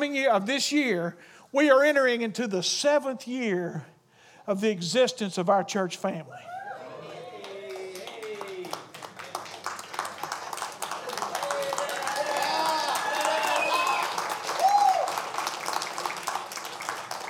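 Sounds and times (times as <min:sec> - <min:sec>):
speech: 0:00.1 - 0:03.9, 0:04.5 - 0:06.5
person whooping: 0:06.3 - 0:08.8, 0:11.3 - 0:15.2
audience clapping in church: 0:07.4 - 0:17.2.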